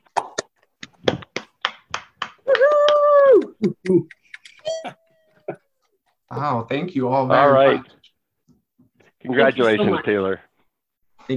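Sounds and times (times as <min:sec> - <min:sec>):
round of applause over video call: 0:01.7 - 0:03.6
speech: 0:03.6 - 0:04.2, 0:06.3 - 0:08.0, 0:09.2 - 0:10.5.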